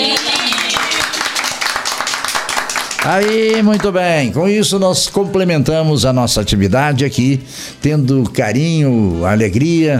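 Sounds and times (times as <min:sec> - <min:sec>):
round of applause: 0:00.0 - 0:04.0
speech: 0:03.0 - 0:09.9.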